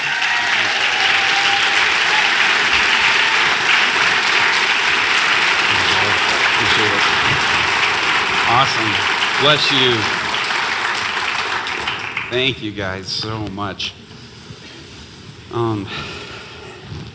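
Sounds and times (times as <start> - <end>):
crowd applause: 0.0 - 12.8
speech: 8.6 - 10.2, 12.3 - 14.0, 15.5 - 16.1.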